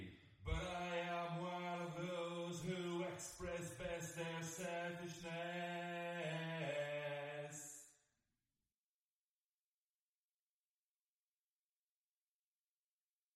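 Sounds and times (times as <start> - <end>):
lead vocals with reverb: 0.0 - 7.9.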